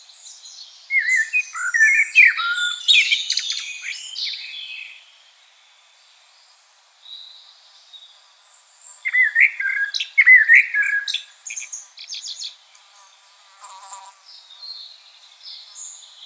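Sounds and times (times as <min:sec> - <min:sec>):
common blackbird Turdus merula song: 0:00.0 - 0:16.2.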